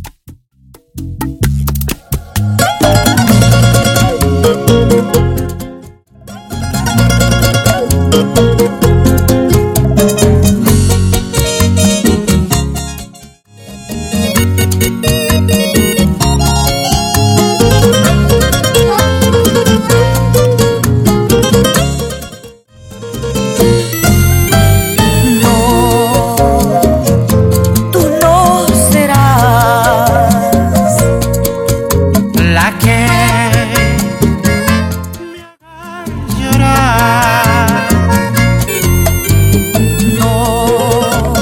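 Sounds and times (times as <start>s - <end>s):
simple music intro: 0.6s - 41.4s.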